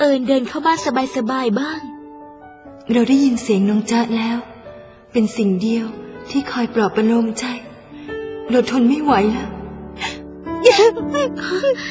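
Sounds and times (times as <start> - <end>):
speech: 0.0 - 2.0, 2.9 - 4.5, 5.1 - 7.6, 8.5 - 11.9
loud sobbing crying: 10.6 - 11.9.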